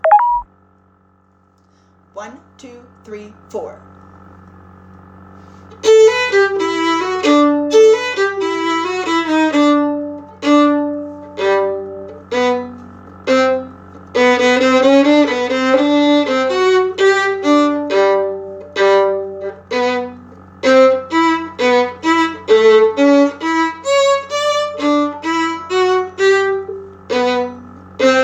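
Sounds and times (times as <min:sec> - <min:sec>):
violin: 0:05.7 - 0:28.2.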